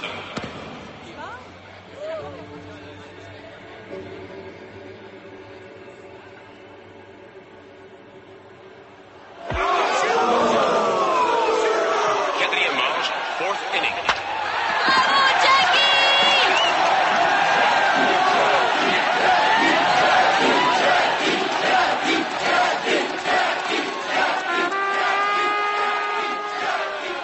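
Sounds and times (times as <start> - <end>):
large baseball stadium crowd cheering: 9.2 - 27.2
whistles: 16.3 - 16.9.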